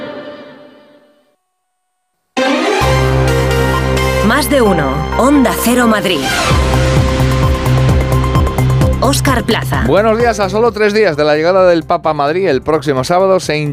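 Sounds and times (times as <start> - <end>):
radio station theme jingle: 2.4 - 12.3
speech: 4.4 - 6.8, 9.0 - 13.7.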